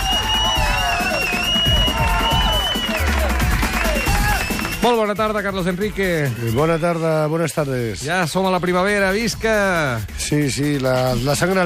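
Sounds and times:
whistles: 0.0 - 5.0
crowd applauding: 0.0 - 7.5
speech: 4.8 - 11.6.

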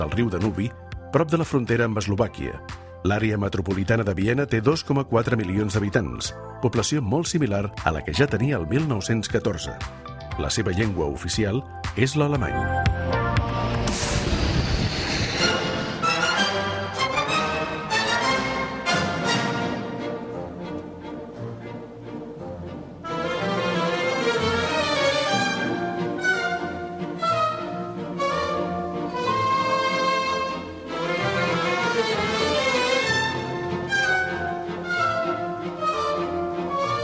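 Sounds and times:
speech: 0.0 - 14.4
classical orchestral music: 15.3 - 37.0.

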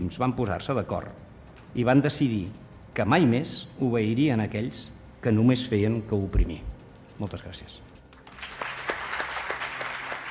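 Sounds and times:
speech: 0.0 - 7.9
standing audience applause in the Aula Magna of the Faculty of Economics and Business: 8.3 - 10.2.

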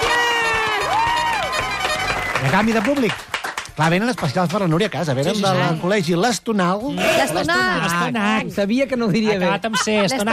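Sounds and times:
audience cheering with whoops and shouting: 0.0 - 3.2
audience clapping: 0.0 - 5.3
speech: 2.4 - 10.3.

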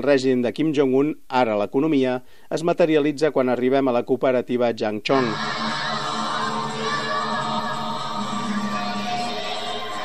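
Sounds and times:
speech: 0.0 - 5.8
dozens of children singing at a nursery: 5.2 - 10.0.

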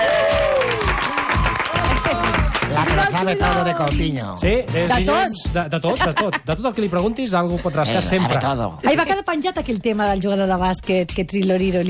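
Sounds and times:
audience applause: 0.0 - 3.6
cheering and shouting voices: 0.0 - 3.8
speech: 3.2 - 11.8
laughter: 5.7 - 6.7.

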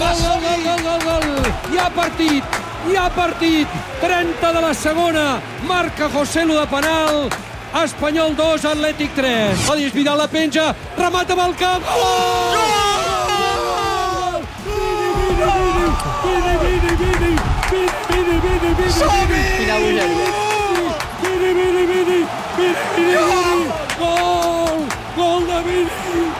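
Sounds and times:
stadium crowd roaring after a goal in Espanyol versus Atlético de Madrid: 0.0 - 26.3
speech: 1.8 - 12.9, 16.2 - 20.4, 22.6 - 24.3
excited shouting voices: 11.8 - 26.3.

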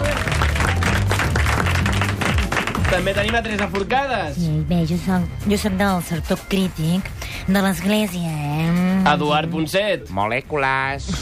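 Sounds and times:
applause from students in a radio studio: 0.0 - 3.9
speech: 2.9 - 11.2.

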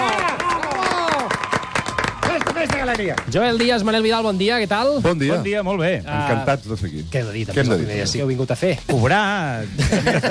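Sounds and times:
studio audience applauding the show's presenters on premiere day: 0.0 - 4.2
speech: 2.9 - 10.2
laughter: 9.6 - 10.2.

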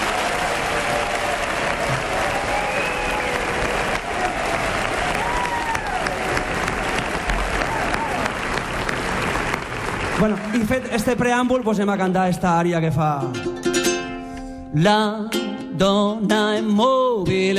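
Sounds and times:
audience applause: 0.0 - 12.0
speech: 10.2 - 13.7, 14.7 - 17.5.

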